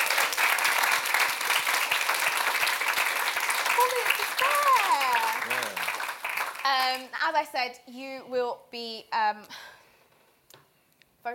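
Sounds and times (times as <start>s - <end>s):
audience applause: 0.0s - 7.1s
speech: 6.8s - 9.7s.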